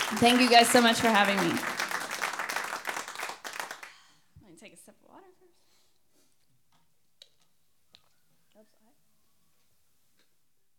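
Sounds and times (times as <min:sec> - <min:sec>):
crowd applauding: 0:00.0 - 0:04.0
speech: 0:00.1 - 0:01.8.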